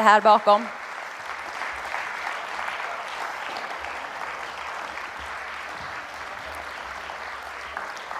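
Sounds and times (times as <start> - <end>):
speech: 0.0 - 0.8
audience applause: 0.0 - 8.1.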